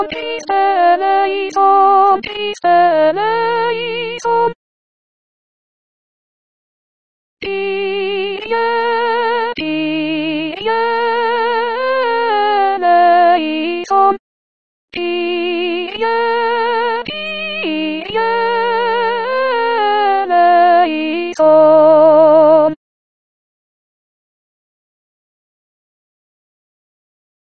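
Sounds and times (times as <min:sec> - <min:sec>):
soprano singing: 0:00.0 - 0:04.6, 0:07.4 - 0:14.2, 0:15.0 - 0:22.8.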